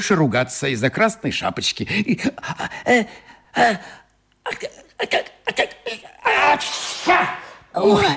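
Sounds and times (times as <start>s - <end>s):
speech: 0.0s - 8.1s
sneeze: 6.3s - 7.6s.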